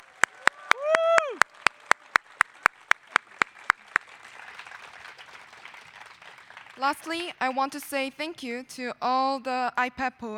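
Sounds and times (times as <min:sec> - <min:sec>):
audience applause: 0:00.0 - 0:07.6
speech: 0:06.8 - 0:10.3.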